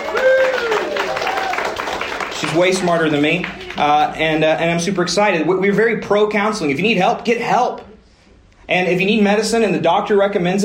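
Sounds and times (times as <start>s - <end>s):
person whooping: 0.0s - 1.8s
audience clapping: 0.0s - 4.2s
speech: 2.5s - 7.9s, 8.7s - 10.6s.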